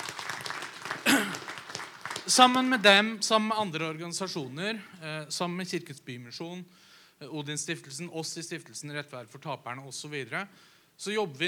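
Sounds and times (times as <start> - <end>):
audience applause: 0.0 - 2.7
speech: 2.3 - 11.4.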